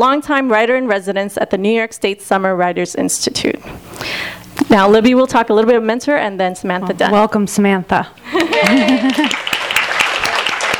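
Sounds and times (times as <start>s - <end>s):
speech: 0.0s - 9.4s
audience applause: 8.5s - 10.7s.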